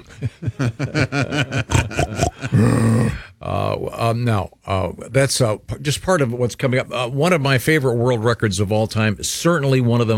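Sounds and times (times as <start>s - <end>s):
speech: 0.0s - 1.8s, 4.2s - 10.1s
laughter: 0.0s - 2.7s
animal grunting: 1.7s - 3.2s.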